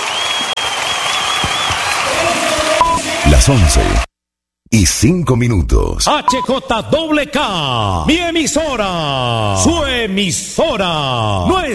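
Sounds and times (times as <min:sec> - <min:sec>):
crowd applause: 0:00.0 - 0:04.1
speech: 0:03.4 - 0:04.1, 0:04.7 - 0:11.7.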